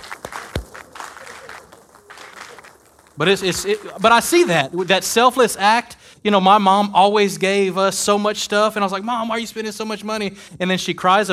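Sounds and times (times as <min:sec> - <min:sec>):
church audience clapping for mothers: 0:00.0 - 0:05.4
speech: 0:03.2 - 0:11.3.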